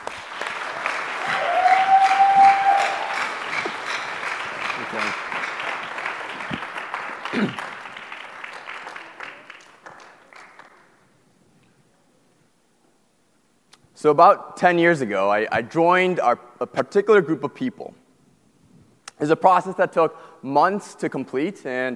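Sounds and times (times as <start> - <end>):
audience applause welcoming a guest preacher: 0.0 - 11.0
speech: 14.0 - 18.0, 19.2 - 21.9.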